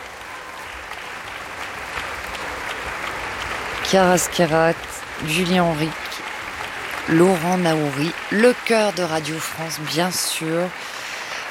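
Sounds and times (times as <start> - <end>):
concert audience applauding: 0.0 - 11.4
speech: 3.9 - 6.1, 7.1 - 10.9.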